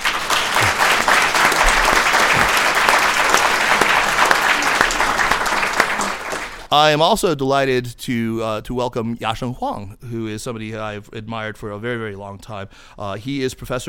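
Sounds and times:
crowd applauding: 0.0s - 6.7s
speech: 6.7s - 13.8s.

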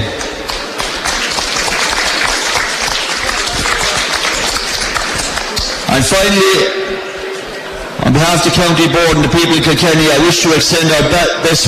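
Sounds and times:
audience applause: 0.0s - 6.1s
speech: 6.0s - 6.9s, 8.0s - 11.6s.

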